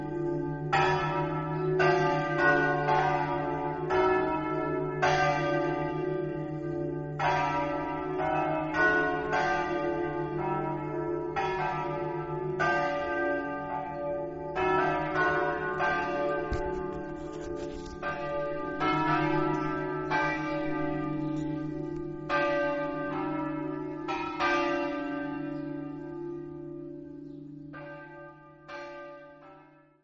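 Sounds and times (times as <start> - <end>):
bells ringing: 0.0 - 29.8.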